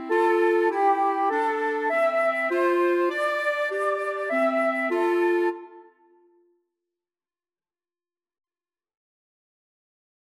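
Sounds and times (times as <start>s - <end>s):
clarinet: 0.0s - 6.3s
flutes: 0.0s - 6.3s.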